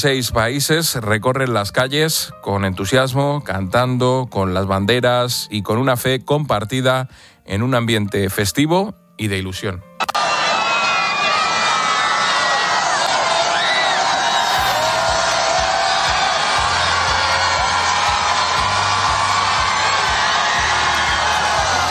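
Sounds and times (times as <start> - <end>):
speech: 0.0 - 9.9
huge crowd of young pilgrims cheering and applauding: 10.0 - 21.8
whoops and high shouts from young crowd: 10.0 - 21.8.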